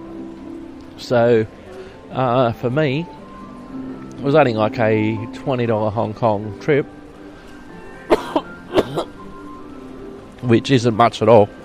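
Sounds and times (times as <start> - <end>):
speech: 1.0 - 7.0, 10.4 - 11.6
person clearing something stuck in their throat: 8.1 - 9.1.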